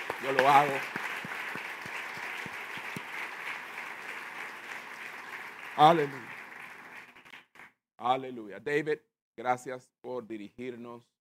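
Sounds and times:
audience applause: 0:00.0 - 0:07.7
speech: 0:00.2 - 0:01.1, 0:05.8 - 0:06.3, 0:08.0 - 0:11.1.

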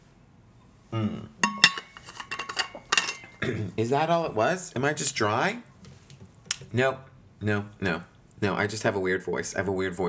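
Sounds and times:
speech: 0:00.9 - 0:01.4, 0:03.5 - 0:05.7, 0:06.7 - 0:10.0
glass clinking: 0:01.4 - 0:03.4.

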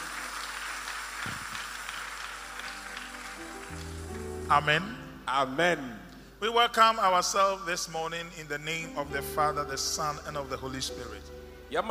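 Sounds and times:
audience clapping in praise: 0:00.0 - 0:05.0
speech: 0:04.5 - 0:11.8.

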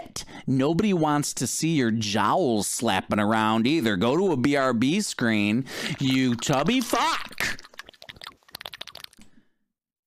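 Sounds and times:
speech: 0:00.5 - 0:07.6
chewing food on the microphone: 0:06.0 - 0:09.3.

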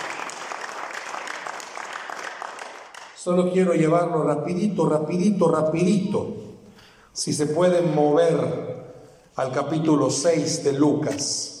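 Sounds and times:
audience applause: 0:00.0 - 0:03.2
speech: 0:03.2 - 0:06.4, 0:07.2 - 0:08.8, 0:09.4 - 0:11.5.

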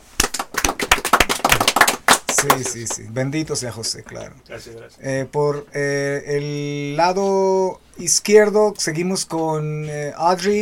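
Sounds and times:
audience applause: 0:00.2 - 0:03.0
speech: 0:02.4 - 0:10.6.

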